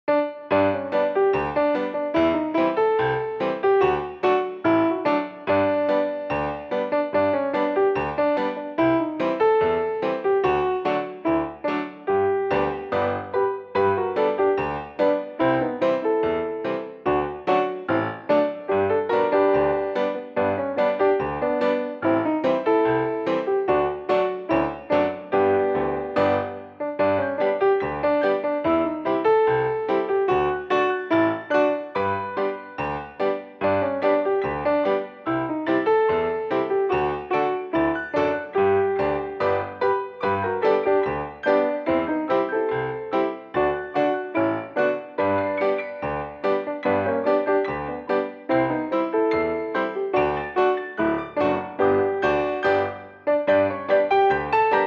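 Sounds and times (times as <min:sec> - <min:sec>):
piano mix: 0:00.0 - 0:54.8.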